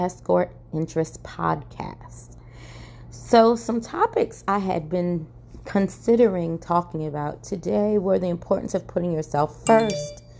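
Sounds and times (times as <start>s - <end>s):
speech: 0.0s - 10.2s
phone notification sound: 9.7s - 10.3s.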